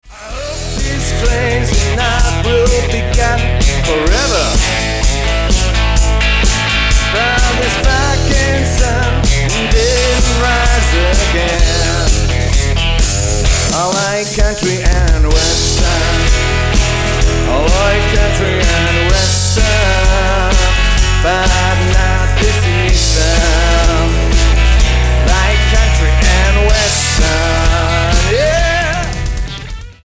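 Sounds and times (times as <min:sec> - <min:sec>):
country and western music: 0:00.0 - 0:30.0.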